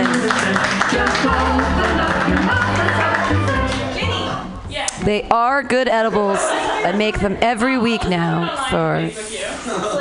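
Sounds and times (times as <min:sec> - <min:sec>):
laughter: 0:00.0 - 0:03.6, 0:05.9 - 0:10.0
audience clapping wildly: 0:00.0 - 0:04.0
speech: 0:05.1 - 0:10.0.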